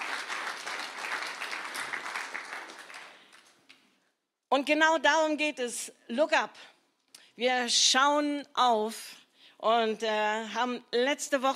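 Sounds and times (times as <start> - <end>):
audience applause: 0.0 - 3.6
speech: 4.5 - 6.7, 7.4 - 11.5.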